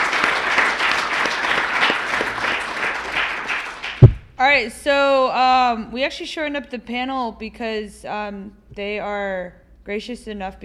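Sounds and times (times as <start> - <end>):
audience applause: 0.0 - 4.2
speech: 4.4 - 10.6.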